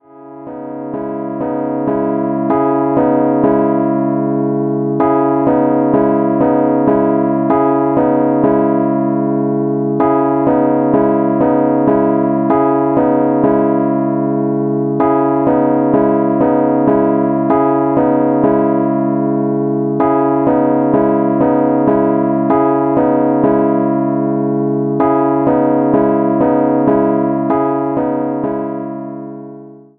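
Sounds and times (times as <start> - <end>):
Rhodes electric piano hip hop chords: 0.0 - 29.9.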